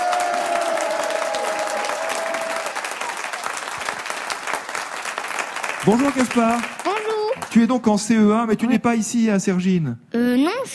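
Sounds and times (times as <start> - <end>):
audience applauding: 0.0 - 7.9
speech: 5.8 - 6.8, 7.6 - 10.7.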